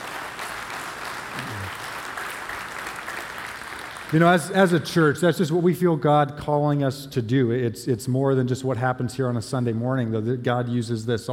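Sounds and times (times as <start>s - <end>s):
audience clapping: 0.0s - 4.8s
speech: 4.1s - 11.3s.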